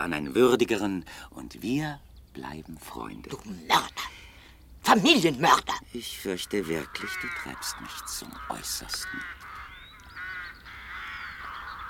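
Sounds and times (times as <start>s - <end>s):
speech: 0.0s - 4.2s, 4.8s - 9.4s
ravens cawing: 3.7s - 4.6s, 5.4s - 11.8s.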